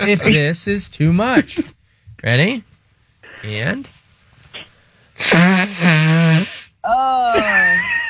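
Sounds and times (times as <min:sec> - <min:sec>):
speech: 0:00.0 - 0:02.7, 0:03.4 - 0:04.0, 0:04.6 - 0:07.9
loud nose blowing: 0:04.6 - 0:06.8.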